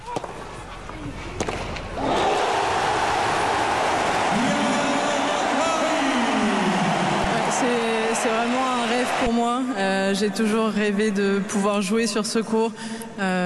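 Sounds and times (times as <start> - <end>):
tennis ball hits on centre court: 1.3 - 1.9
tennis crowd cheering at match point on centre court: 2.0 - 9.9
speech: 9.1 - 13.4.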